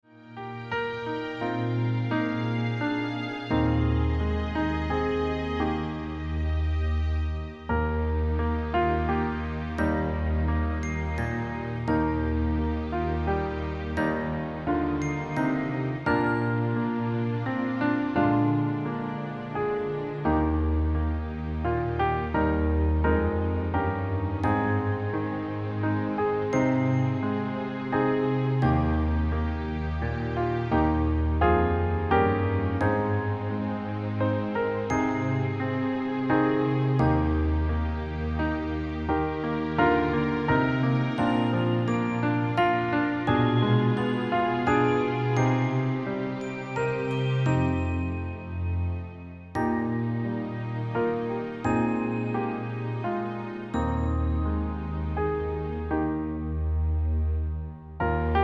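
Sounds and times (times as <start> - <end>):
christmas carol in E-flat major: 0.4 - 58.4.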